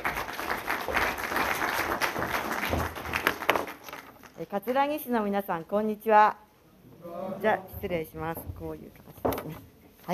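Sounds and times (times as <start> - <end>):
crowd applauding: 0.0 - 4.2
speech: 4.5 - 6.4, 7.1 - 10.1.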